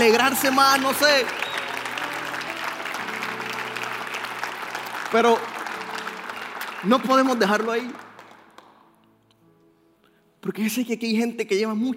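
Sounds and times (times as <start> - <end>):
speech: 0.0 - 1.5, 5.1 - 5.5, 6.8 - 8.1, 10.4 - 11.9
audience applause: 0.0 - 8.8.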